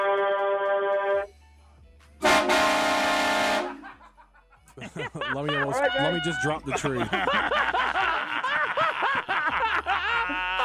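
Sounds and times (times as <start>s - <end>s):
truck air horn sounding a trucker salute: 0.0s - 1.3s, 2.2s - 4.0s
laughter: 3.6s - 10.6s
speech: 4.8s - 7.9s.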